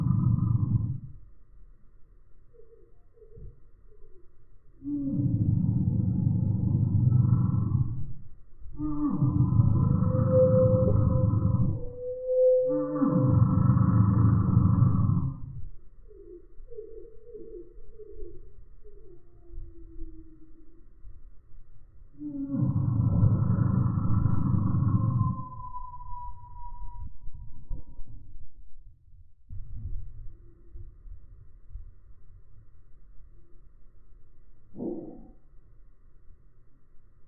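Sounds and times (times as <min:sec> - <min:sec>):
Eurasian bullfinch threat call greatly slowed: 0:00.0 - 0:01.4, 0:02.4 - 0:21.2, 0:22.0 - 0:28.0, 0:33.3 - 0:36.0.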